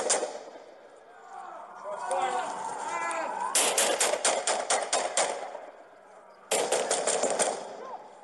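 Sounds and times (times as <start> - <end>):
police gunfire volleys recorded on a body-worn camera: 0.0 - 0.5, 3.6 - 5.6, 6.5 - 7.8
people's voices: 0.0 - 8.2.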